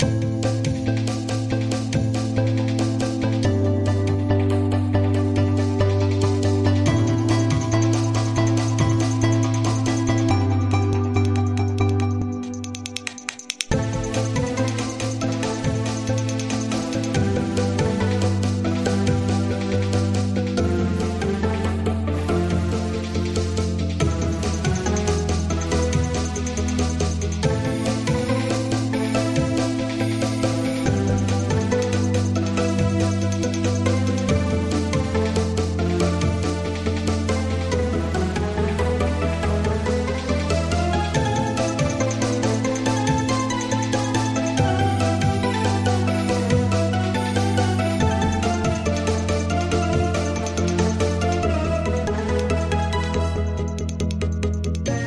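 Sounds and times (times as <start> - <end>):
music loop: 0.0 - 55.0.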